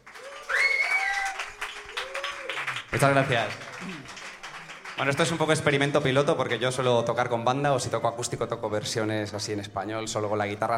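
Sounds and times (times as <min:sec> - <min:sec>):
audience applause: 0:00.0 - 0:05.9
speech: 0:03.0 - 0:04.2, 0:05.0 - 0:10.7.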